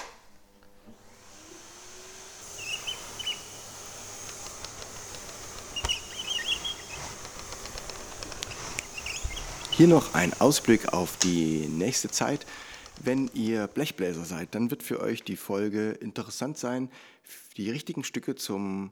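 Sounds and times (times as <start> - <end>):
vacuum cleaner gliding over carpet: 0.7 - 14.7
speech: 9.8 - 18.9.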